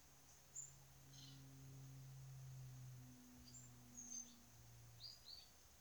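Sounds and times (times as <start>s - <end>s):
aeroplane: 0.8s - 5.0s.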